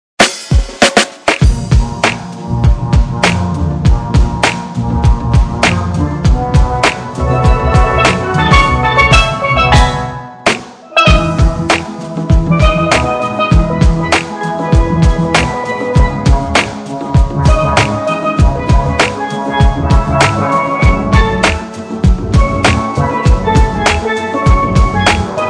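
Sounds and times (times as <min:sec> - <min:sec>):
steel drum dub music: 0:00.2 - 0:25.4.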